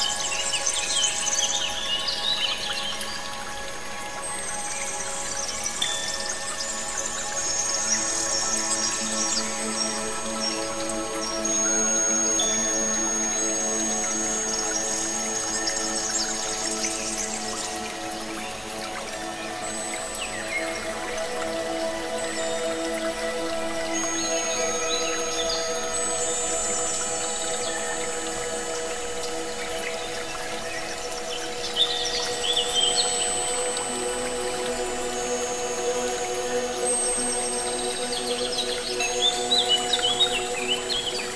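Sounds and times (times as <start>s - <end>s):
wind chimes: 0.0s - 41.3s.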